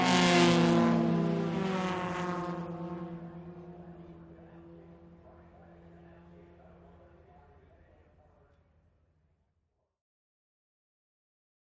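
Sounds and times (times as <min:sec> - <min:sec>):
vintage cars racing by: 0:00.0 - 0:07.7.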